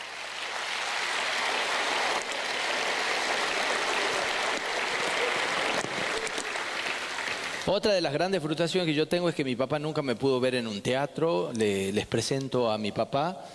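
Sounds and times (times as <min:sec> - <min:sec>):
audience applause: 0:00.0 - 0:07.7
speech: 0:07.7 - 0:13.5.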